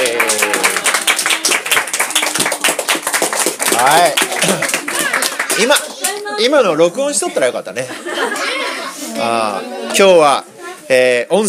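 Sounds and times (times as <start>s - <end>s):
group clapping: 0.0s - 6.3s
speech: 3.8s - 4.8s, 5.6s - 8.5s, 9.2s - 11.4s
laughter: 4.4s - 5.0s, 7.8s - 9.8s.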